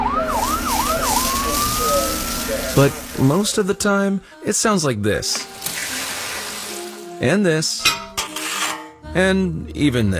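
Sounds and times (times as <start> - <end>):
fire engine siren: 0.0 - 3.6
speech: 2.8 - 5.6, 7.2 - 8.0, 9.2 - 10.1.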